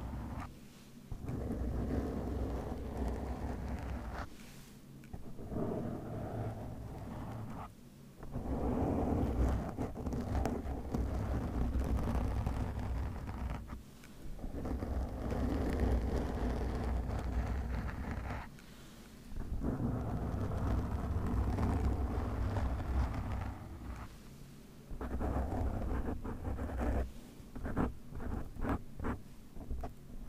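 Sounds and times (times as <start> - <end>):
microphone scratching and rubbing with shaving foam: 0.0 - 0.5, 1.1 - 4.3, 5.1 - 13.8, 14.4 - 18.5, 19.4 - 24.2, 24.9 - 30.2.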